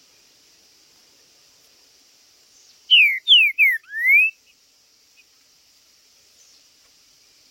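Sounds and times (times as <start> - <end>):
green-winged saltator song: 2.9 - 4.4.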